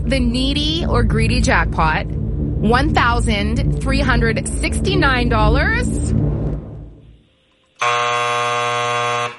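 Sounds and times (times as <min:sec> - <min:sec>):
speech: 0:00.1 - 0:06.0, 0:07.8 - 0:08.3
quiz buzzer for a wrong answer in a radio jackpot contest: 0:07.7 - 0:09.3.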